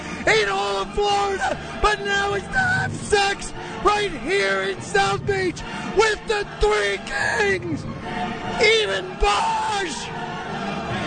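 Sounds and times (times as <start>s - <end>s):
man bellowing and yelling excitedly as he is introduced: 0.2s - 7.8s, 8.6s - 10.1s
speech: 0.8s - 10.2s.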